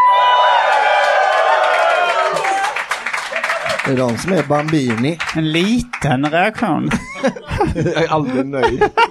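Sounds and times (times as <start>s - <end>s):
live audience cheering and whooping: 0.0s - 4.6s
audience clapping: 0.0s - 7.4s
speech: 3.8s - 9.0s
laughter: 6.7s - 9.0s.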